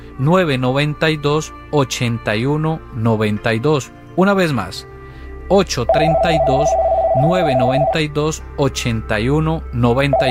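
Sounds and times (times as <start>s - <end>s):
speech: 0.2s - 4.9s, 5.5s - 10.3s
telephone line tone of an incoming call to a radio show: 5.9s - 8.0s, 10.1s - 10.3s.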